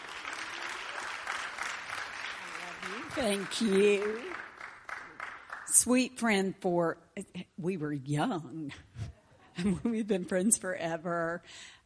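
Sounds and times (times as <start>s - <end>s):
audience applause welcoming two guests onto a stage: 0.0s - 5.7s
speech: 3.2s - 4.4s, 5.8s - 8.9s, 9.6s - 11.8s.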